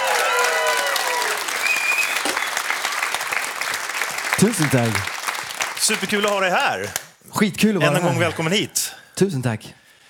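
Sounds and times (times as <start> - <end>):
whistles and cheers: 0.0 - 3.2
audience applause: 0.0 - 7.0
speech: 4.4 - 5.2, 5.8 - 9.8.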